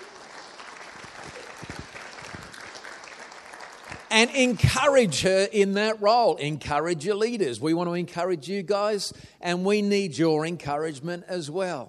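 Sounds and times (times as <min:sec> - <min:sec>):
audience applause: 0:00.0 - 0:04.1
speech: 0:04.2 - 0:11.8.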